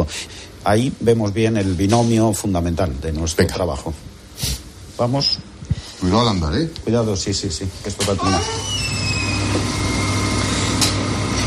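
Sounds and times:
speech: 0.0 - 8.8
freezer motors humming: 7.8 - 11.4.

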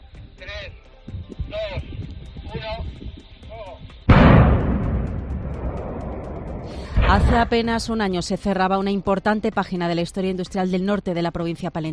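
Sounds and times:
speech: 2.5 - 4.0, 7.1 - 11.9
controlled demolition blast of power plant chimney: 4.1 - 8.0.

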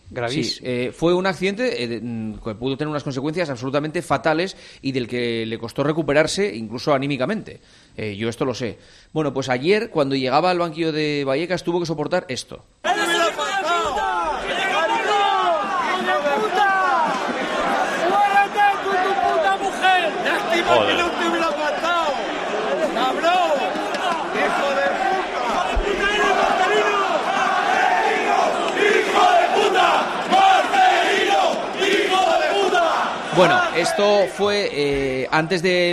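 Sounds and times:
speech: 0.1 - 12.8, 33.4 - 35.9
stadium crowd shouting insults: 12.9 - 34.6.

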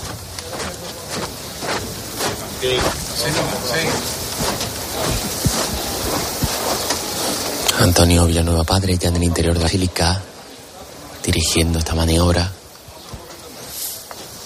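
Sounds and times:
shuffling footsteps of procession float bearers: 0.0 - 7.9, 12.7 - 14.4
speech: 2.6 - 5.2, 7.8 - 10.3, 11.3 - 12.6.

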